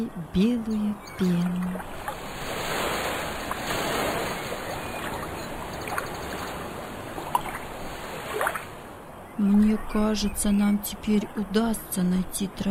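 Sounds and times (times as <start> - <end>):
speech: 0.0 - 2.2, 9.4 - 12.6
sea waves hitting coastal rocks: 1.6 - 9.0.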